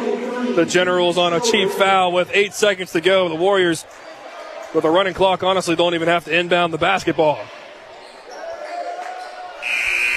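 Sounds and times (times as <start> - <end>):
speech: 0.6 - 4.1, 4.7 - 7.6
game-ending buzzer inside William J. and Evelyn B. Samford Gymnasium: 9.6 - 10.1.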